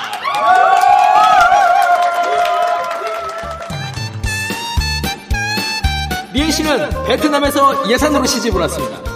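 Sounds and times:
crowd applause and cheering: 0.0 - 5.3
bouncy rhythmic musical intro: 3.4 - 9.1
speech: 6.5 - 9.1.

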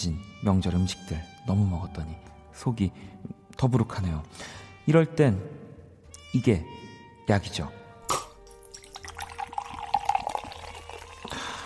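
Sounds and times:
speech: 0.0 - 5.6, 6.3 - 7.8
cola being poured, fizzing: 8.5 - 11.6.

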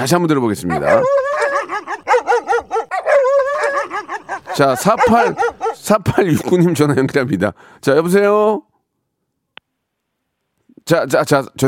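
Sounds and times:
speech: 0.0 - 1.4, 4.6 - 8.7, 10.9 - 11.6
dog barking: 0.6 - 5.9.

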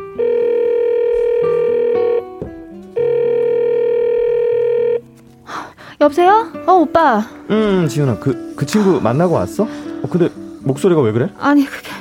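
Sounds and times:
outgoing phone call ringback tone: 0.0 - 2.4, 3.0 - 5.0
speech: 6.0 - 11.9.

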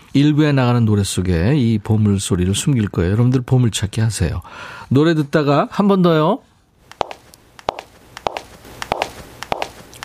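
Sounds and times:
speech: 0.2 - 6.5
hard-soled dress shoe footsteps: 6.9 - 10.0.

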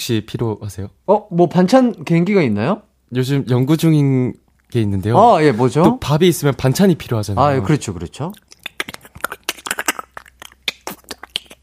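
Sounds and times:
speech: 0.0 - 8.5
person imitating a frying egg with their mouth: 8.3 - 11.6.

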